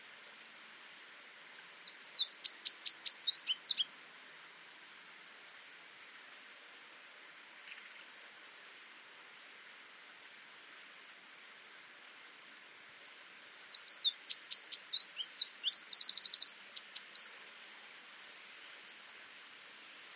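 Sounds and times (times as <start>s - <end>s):
Eurasian wren song: 1.5s - 4.1s, 11.6s - 20.1s.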